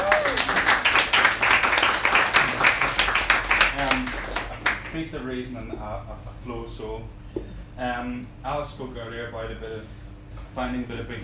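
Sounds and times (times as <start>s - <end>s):
audience applause: 0.0s - 5.0s
speech: 5.0s - 10.0s, 10.6s - 11.2s.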